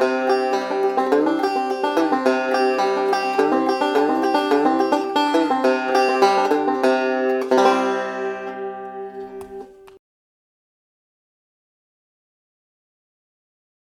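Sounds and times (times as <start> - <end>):
fretless banjo: 0.0 - 10.0.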